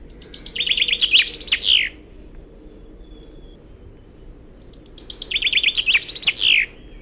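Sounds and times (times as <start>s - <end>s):
low steady rumble: 0.0s - 5.4s
finch singing trilling phrases ending in Walloon-style flourish: 0.0s - 7.0s.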